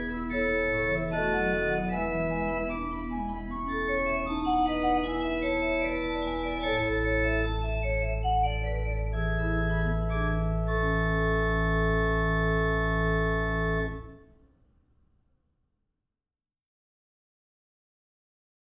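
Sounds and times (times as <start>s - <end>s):
organ prelude in A major: 0.0s - 14.3s.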